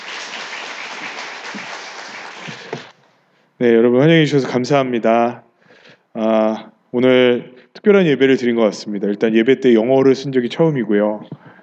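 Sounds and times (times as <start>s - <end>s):
audience applause: 0.0s - 2.9s
speech: 3.6s - 5.5s, 6.2s - 11.5s.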